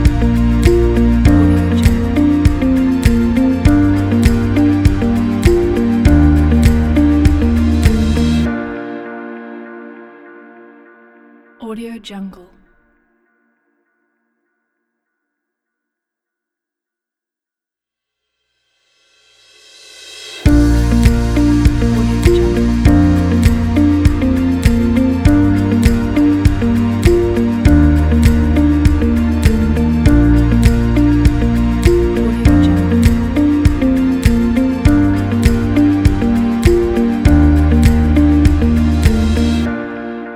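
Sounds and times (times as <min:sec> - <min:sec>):
positive upbeat music: 0:00.0 - 0:08.9, 0:20.5 - 0:40.3.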